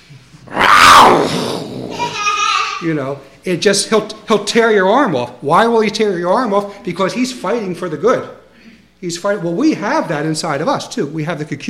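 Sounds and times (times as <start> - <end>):
man imitating angry dog growl: 0.5 - 2.2
speech: 2.8 - 8.4, 9.0 - 11.6.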